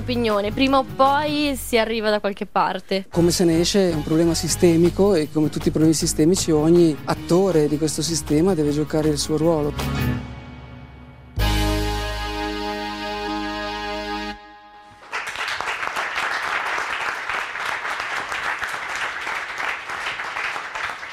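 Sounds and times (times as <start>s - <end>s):
speech: 0.1s - 10.3s
sustained musical chord: 10.2s - 15.0s
audience applause in an auditorium: 14.9s - 21.1s.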